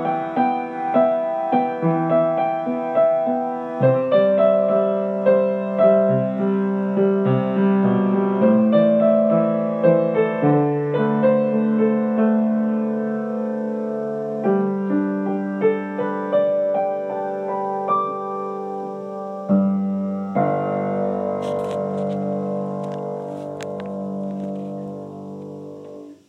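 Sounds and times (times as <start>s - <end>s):
Pleyel piano: 0.0s - 26.2s.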